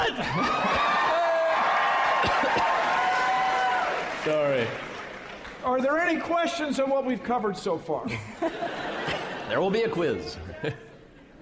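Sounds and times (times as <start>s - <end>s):
laughter: 0.0s - 2.8s, 8.0s - 11.3s
high shouts: 0.0s - 4.1s
live audience cheering and whooping: 0.0s - 5.2s
speech: 4.2s - 4.9s, 5.6s - 10.9s.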